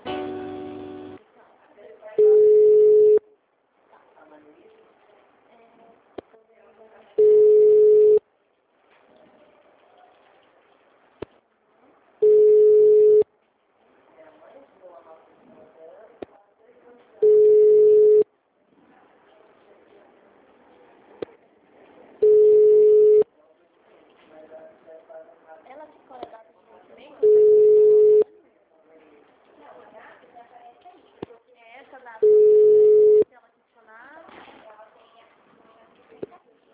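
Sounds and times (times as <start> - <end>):
telephone line tones during a call transfer: 2.2 - 3.2, 7.2 - 8.2, 12.2 - 13.2, 17.2 - 18.2, 22.2 - 23.2, 27.2 - 28.3, 32.2 - 33.2.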